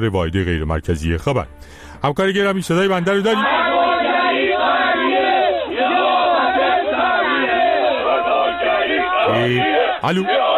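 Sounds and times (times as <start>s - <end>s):
speech: 0.0s - 3.6s, 9.4s - 10.5s
gathered crowd of demonstrators shouting: 3.3s - 10.5s.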